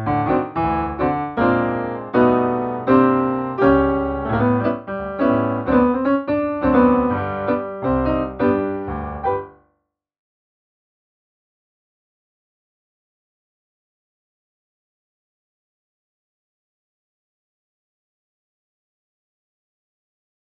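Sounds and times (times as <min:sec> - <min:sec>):
piano: 0:00.0 - 0:09.6.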